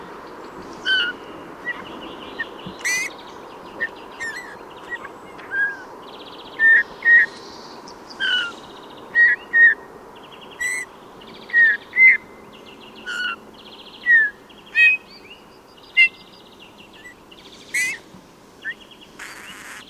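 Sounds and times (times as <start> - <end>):
Eurasian bullfinch singing: 0.8 - 8.6, 11.5 - 18.0, 18.6 - 19.8.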